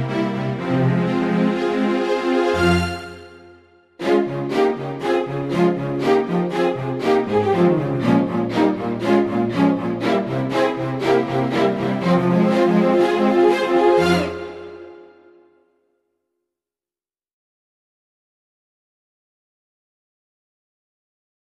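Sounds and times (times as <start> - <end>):
Megavoice strings: 0.0 - 15.5.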